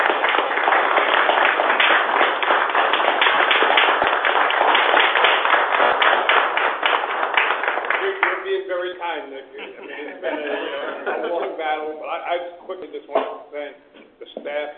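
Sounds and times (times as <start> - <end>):
audience applause: 0.0 - 8.5
laughter: 9.2 - 12.0
speech: 11.8 - 14.7.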